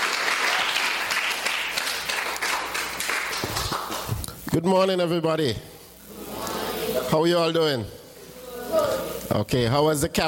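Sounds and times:
crowd applause: 0.0 - 4.2
speech: 4.5 - 5.7, 7.1 - 8.0, 8.7 - 10.2.

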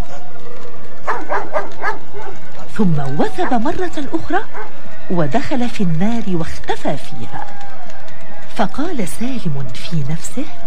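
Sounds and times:
dog barking with sharp yapping barks: 1.0 - 2.4, 4.5 - 4.7
speech: 1.6 - 7.7, 8.6 - 10.6.

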